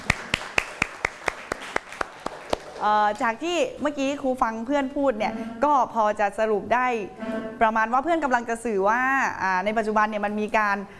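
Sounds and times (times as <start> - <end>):
classroom applause: 0.0 - 2.9
speech: 2.8 - 10.9.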